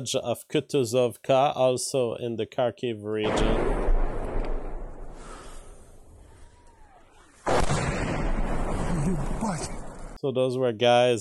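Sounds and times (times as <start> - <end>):
speech: 0.0 - 3.8, 10.2 - 11.2
missile striking with a heavy blast in the Kharkiv region: 3.3 - 6.2, 7.4 - 10.2.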